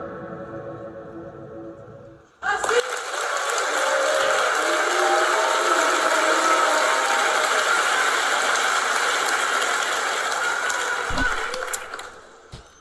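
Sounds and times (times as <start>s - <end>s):
crowd applauding: 2.4s - 12.5s.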